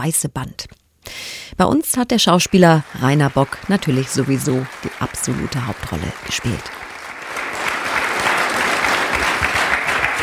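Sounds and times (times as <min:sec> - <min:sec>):
speech: 0:00.0 - 0:06.8
studio audience applause: 0:02.2 - 0:10.2.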